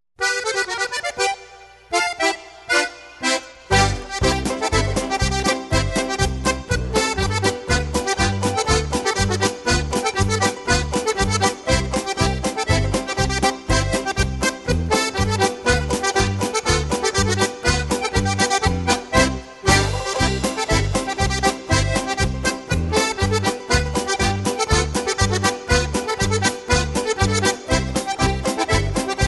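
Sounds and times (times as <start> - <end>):
polka music: 0.2 - 29.2.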